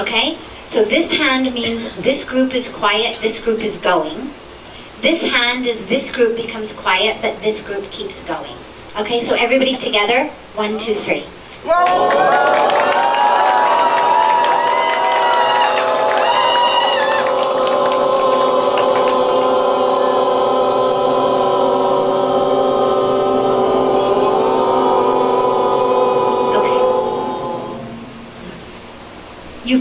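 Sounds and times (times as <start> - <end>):
speech: 0.0 - 4.4, 5.0 - 12.8
audience groups chanting om together: 11.7 - 28.6.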